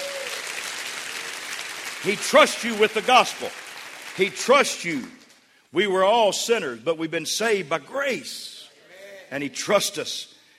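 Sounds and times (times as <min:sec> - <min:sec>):
hands clapping: 0:00.0 - 0:05.4
speech: 0:02.0 - 0:03.6, 0:04.2 - 0:08.6, 0:09.3 - 0:10.3.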